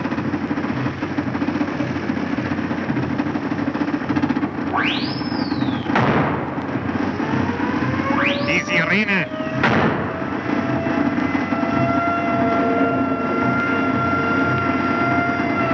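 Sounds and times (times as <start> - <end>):
airplane engine: 0.0 - 15.7
fired signal rockets: 4.7 - 7.2, 8.0 - 11.7
speech: 8.9 - 9.4.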